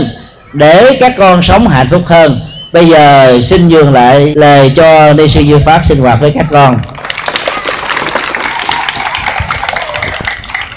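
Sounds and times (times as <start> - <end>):
speech: 0.5 - 6.9
children clapping at a gathering led by a Buddhist nun: 6.9 - 10.7.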